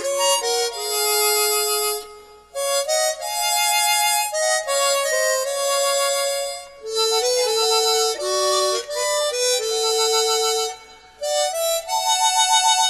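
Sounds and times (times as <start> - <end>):
hymns played on chromatic harmonica: 0.0 - 12.8.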